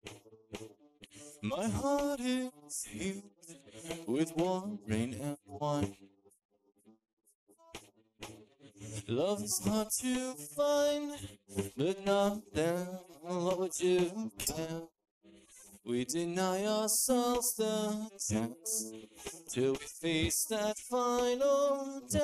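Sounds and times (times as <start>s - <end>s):
person singing: 1.4s - 5.9s, 8.8s - 14.9s, 15.9s - 22.2s.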